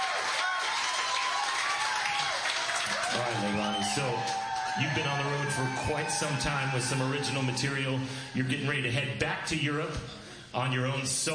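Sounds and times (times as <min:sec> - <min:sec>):
audience cheering and applauding a performer at a blues show in St. Elmo: 0:00.0 - 0:08.9
speech: 0:03.1 - 0:11.3.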